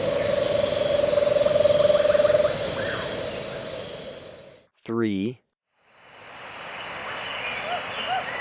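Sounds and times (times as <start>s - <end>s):
bird calling in Ecuador: 0.1s - 4.4s, 7.1s - 8.3s.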